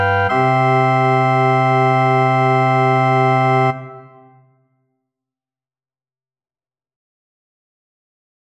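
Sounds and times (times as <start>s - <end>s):
organ: 0.0s - 4.5s.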